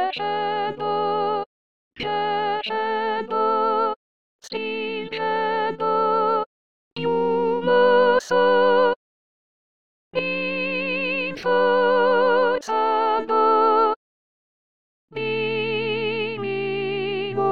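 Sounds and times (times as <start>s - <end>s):
soprano singing: 0.0s - 9.0s, 10.2s - 14.0s, 15.2s - 17.4s.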